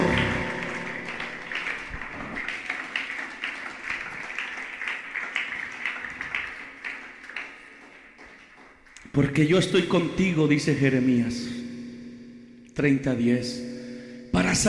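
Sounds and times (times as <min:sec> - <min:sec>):
audience applause: 0:00.0 - 0:09.0
speech: 0:09.2 - 0:11.6, 0:12.8 - 0:13.7.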